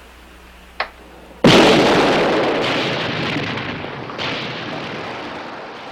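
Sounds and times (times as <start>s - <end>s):
light switch detonator click: 0.8s - 1.0s
explosion in a mine shaft: 1.2s - 5.9s.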